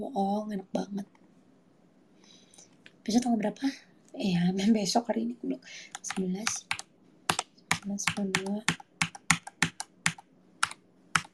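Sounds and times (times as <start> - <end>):
speech: 0.0 - 1.2, 3.1 - 6.8, 7.8 - 8.8
typing on a tablet keyboard: 5.9 - 11.3.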